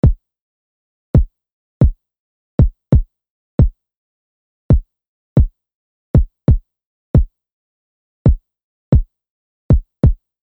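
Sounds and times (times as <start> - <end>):
kick drum: 0.0 - 0.2, 1.2 - 2.0, 2.6 - 3.8, 4.7 - 5.6, 6.2 - 7.4, 8.3 - 9.1, 9.7 - 10.3.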